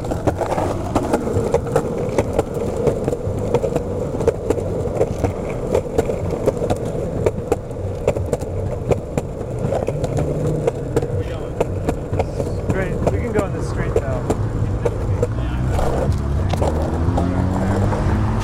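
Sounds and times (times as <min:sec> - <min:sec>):
skateboard wheels rolling over pavement: 0:00.0 - 0:18.4
traffic noise hum: 0:00.0 - 0:18.4
voices: 0:11.0 - 0:17.6.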